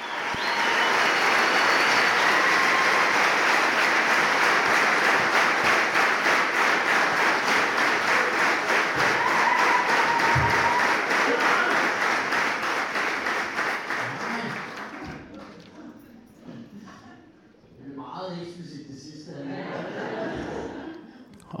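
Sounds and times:
cheering: 0:00.0 - 0:15.2
packed comedy audience clapping: 0:00.0 - 0:15.8
laughter: 0:19.3 - 0:21.5.

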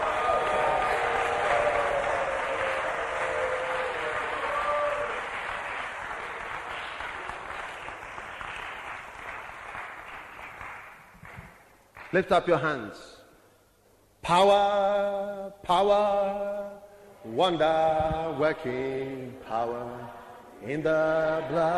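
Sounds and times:
crowd shouting: 0:00.0 - 0:05.2
crowd clapping: 0:00.0 - 0:12.4
speech: 0:12.2 - 0:13.2, 0:14.3 - 0:16.6, 0:17.2 - 0:21.7.

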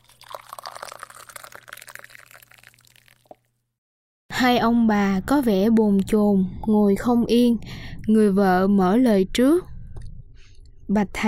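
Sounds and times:
tea being poured for guests by a monk at a temple table: 0:00.0 - 0:03.5
speech: 0:04.4 - 0:09.7, 0:10.9 - 0:11.2.

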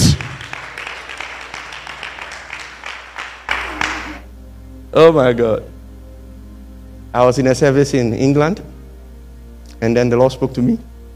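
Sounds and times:
audience clapping: 0:00.0 - 0:04.3
speech: 0:05.0 - 0:05.7, 0:07.1 - 0:08.7, 0:09.8 - 0:10.9.

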